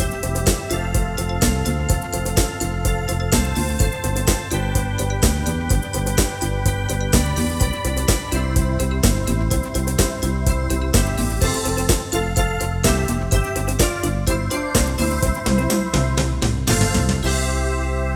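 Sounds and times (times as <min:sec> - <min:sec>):
schlager beat: 0:00.0 - 0:18.0.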